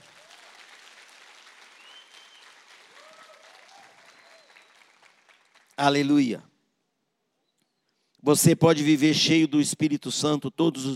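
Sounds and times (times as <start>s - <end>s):
audience applause: 0.0s - 5.7s
voices whooping: 2.9s - 4.6s
speech: 5.8s - 6.5s, 8.3s - 10.9s.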